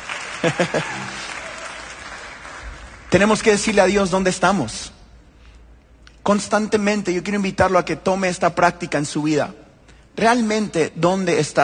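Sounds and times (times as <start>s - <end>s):
audience applause: 0.0s - 3.3s
laughter: 0.2s - 2.2s
speech: 0.4s - 1.2s, 3.1s - 5.0s, 6.3s - 9.6s, 10.2s - 11.6s.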